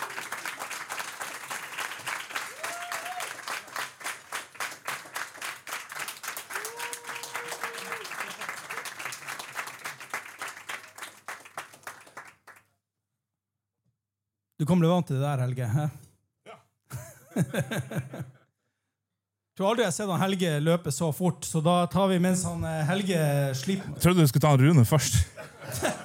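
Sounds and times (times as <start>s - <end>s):
audience applause: 0.0s - 12.6s
speech: 14.6s - 16.0s, 17.4s - 18.4s, 19.6s - 25.9s
laughter: 16.9s - 18.4s, 23.5s - 24.4s, 25.0s - 26.0s.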